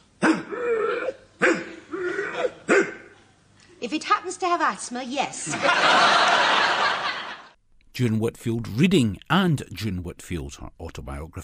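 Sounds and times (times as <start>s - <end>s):
person imitating a dog barking: 0.2s - 3.2s
speech: 3.9s - 7.2s, 8.0s - 11.4s
laughter: 5.4s - 7.6s.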